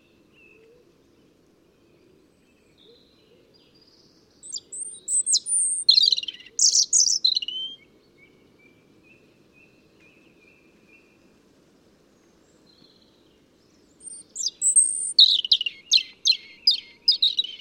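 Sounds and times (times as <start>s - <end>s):
European robin Erithacus rubecula singing: 2.7s - 11.2s, 12.5s - 17.5s.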